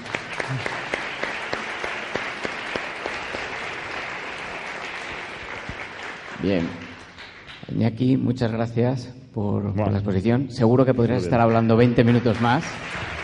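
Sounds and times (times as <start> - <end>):
crowd applause: 0.0 - 7.8, 11.2 - 13.2
speech: 0.5 - 0.8, 6.4 - 6.8, 7.7 - 13.0.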